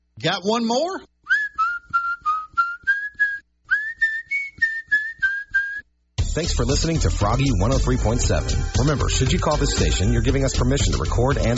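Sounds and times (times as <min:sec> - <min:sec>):
speech: 0:00.2 - 0:01.1, 0:06.4 - 0:11.5
man whistling a lively rhythmic tune: 0:01.2 - 0:05.9.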